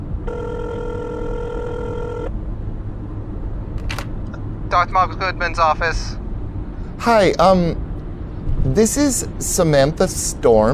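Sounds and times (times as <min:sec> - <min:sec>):
telephone number being dialed: 0:00.3 - 0:02.3
speech: 0:04.8 - 0:06.2, 0:07.0 - 0:07.8, 0:08.7 - 0:10.7.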